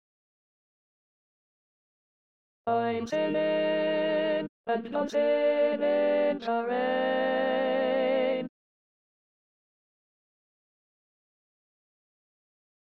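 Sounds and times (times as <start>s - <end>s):
alto voice singing in E flat: 2.7s - 8.5s.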